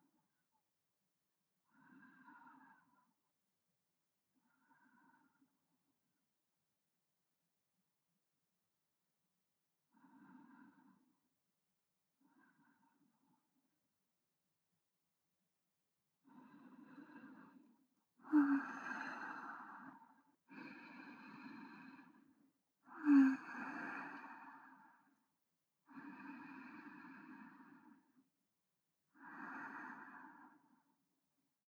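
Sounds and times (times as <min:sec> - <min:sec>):
breathing of a person lying alongside, centred: 0:01.7 - 0:03.2, 0:04.4 - 0:05.5, 0:09.9 - 0:11.3, 0:12.2 - 0:13.4, 0:16.2 - 0:25.2, 0:25.8 - 0:28.3, 0:29.1 - 0:31.0.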